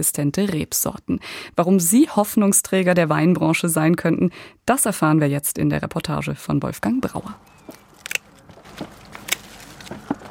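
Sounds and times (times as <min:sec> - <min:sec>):
speech: 0:00.0 - 0:07.6
scissors snipping grapes off the vine: 0:07.6 - 0:09.9.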